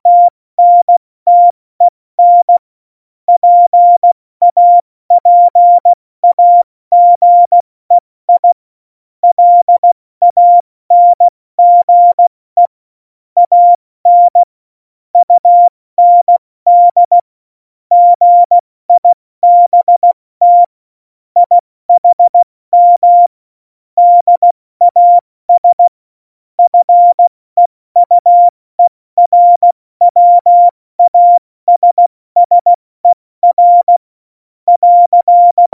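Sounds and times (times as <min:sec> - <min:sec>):
CW Morse code beeps: 0:00.1 - 0:01.5, 0:02.2 - 0:02.6, 0:03.4 - 0:07.6, 0:08.4 - 0:08.6, 0:09.2 - 0:12.2, 0:13.4 - 0:14.5, 0:15.2 - 0:17.2, 0:17.9 - 0:20.7, 0:21.4 - 0:23.3, 0:24.0 - 0:25.9, 0:26.6 - 0:27.3, 0:28.0 - 0:32.8, 0:33.4 - 0:34.0, 0:34.7 - 0:35.7.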